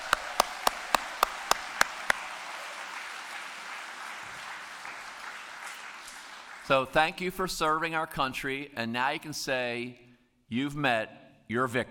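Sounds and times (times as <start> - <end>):
audience applause for veterans: 0.0 - 6.7
speech: 6.7 - 11.9.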